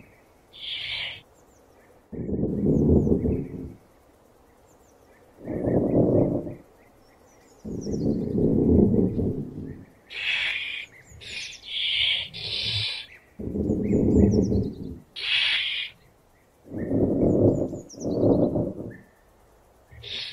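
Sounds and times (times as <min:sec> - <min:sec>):
opossum sounds: 0:02.1 - 0:03.8, 0:05.4 - 0:06.6, 0:07.6 - 0:16.0, 0:16.6 - 0:19.0, 0:19.9 - 0:20.3.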